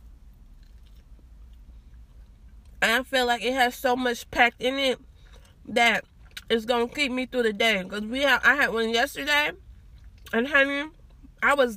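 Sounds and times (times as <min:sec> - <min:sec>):
low steady background: 0:00.0 - 0:11.7
person eating a Taco Bell Breakfast Grand Scrambler steak burrito: 0:00.3 - 0:02.8, 0:05.2 - 0:06.5
speech: 0:02.8 - 0:09.6, 0:10.3 - 0:11.7.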